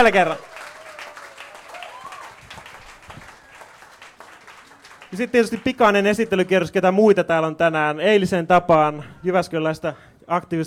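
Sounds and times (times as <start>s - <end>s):
speech: 0.0s - 0.5s, 5.1s - 10.6s
audience applause: 0.0s - 6.7s.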